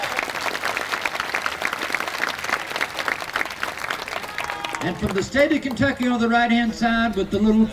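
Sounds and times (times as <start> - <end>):
audience applause: 0.0 - 6.0
speech: 4.8 - 7.7.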